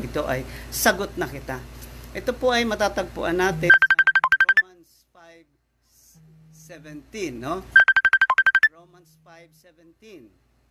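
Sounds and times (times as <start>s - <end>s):
speech: 0.1s - 3.8s, 6.7s - 7.8s, 8.8s - 10.5s
phone ringtone from an incoming call: 3.7s - 4.6s, 7.8s - 8.7s.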